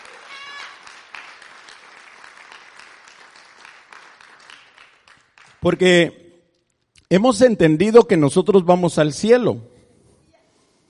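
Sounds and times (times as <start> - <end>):
audience clapping: 0.0 - 6.0
speech: 5.6 - 6.2, 7.1 - 9.7.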